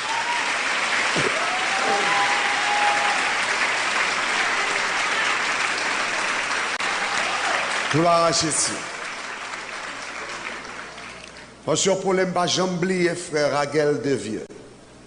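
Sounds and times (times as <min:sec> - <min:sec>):
audience applause: 0:00.0 - 0:11.5
speech: 0:07.9 - 0:08.9, 0:11.6 - 0:14.5.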